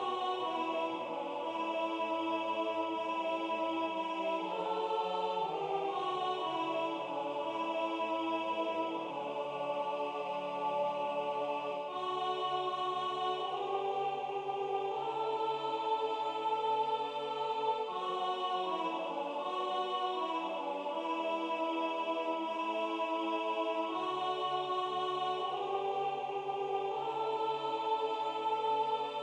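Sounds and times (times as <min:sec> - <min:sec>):
soprano singing: 0:00.0 - 0:29.2.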